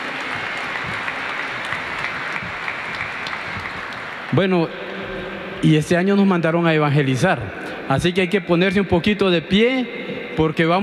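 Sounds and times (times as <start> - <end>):
loud sustained audience applause: 0.0 - 4.6
speech: 4.3 - 4.9, 5.6 - 10.8.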